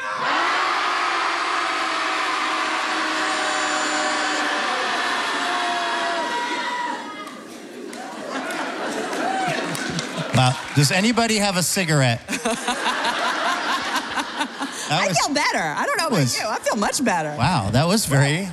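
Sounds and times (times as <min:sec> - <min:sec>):
group of people shouting together: 0:00.0 - 0:10.2
laughter: 0:03.8 - 0:16.3
speech: 0:10.4 - 0:13.2, 0:14.9 - 0:18.5.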